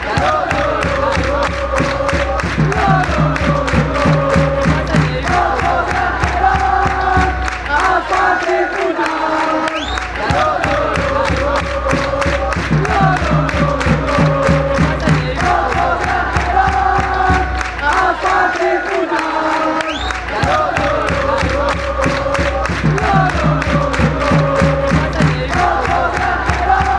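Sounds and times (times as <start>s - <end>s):
crowd chanting: 0.0s - 26.9s.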